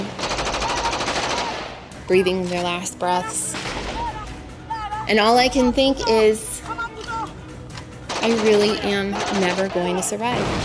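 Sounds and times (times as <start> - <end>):
automatic gunfire: 0.2 - 1.7, 8.1 - 10.6
speech: 2.1 - 3.8, 5.1 - 6.8, 8.2 - 10.6.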